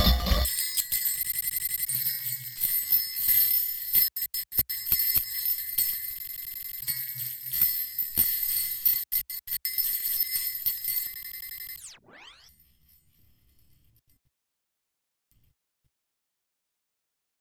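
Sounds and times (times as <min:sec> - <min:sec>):
boosted bass: 0:00.0 - 0:00.5
glitchy bells: 0:00.0 - 0:08.2, 0:09.2 - 0:12.5.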